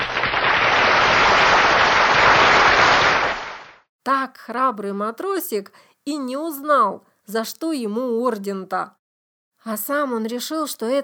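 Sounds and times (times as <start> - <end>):
loud prolonged applause: 0.0 - 3.8
speech: 4.3 - 9.0, 9.6 - 11.0.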